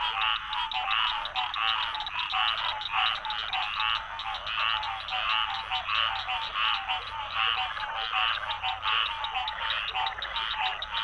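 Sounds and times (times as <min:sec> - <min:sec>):
cacophony of purple martins: 0:00.1 - 0:11.0.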